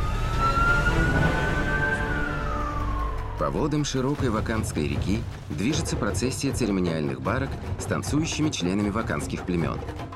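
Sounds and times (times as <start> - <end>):
ambulance engine and road noise: 0.0 - 4.1
ambulance siren, high-pitched steady tone: 0.0 - 4.1
speech: 3.4 - 10.1.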